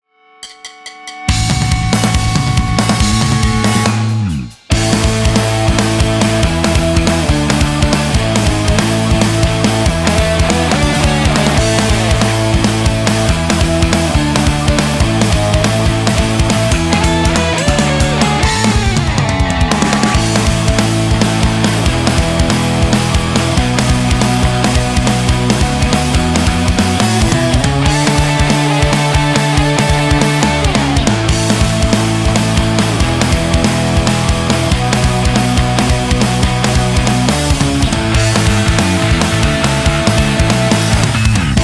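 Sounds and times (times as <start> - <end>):
instrumental music: 0.4 - 41.6.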